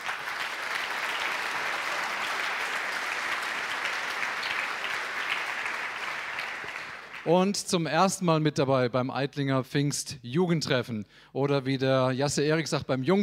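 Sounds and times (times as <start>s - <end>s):
applause: 0.0s - 7.3s
speech: 7.2s - 13.2s.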